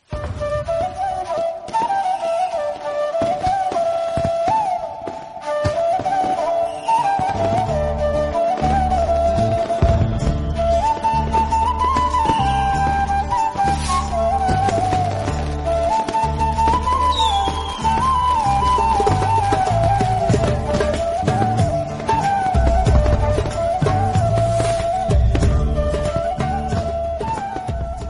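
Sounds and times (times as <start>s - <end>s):
instrumental background music: 0.0s - 28.0s.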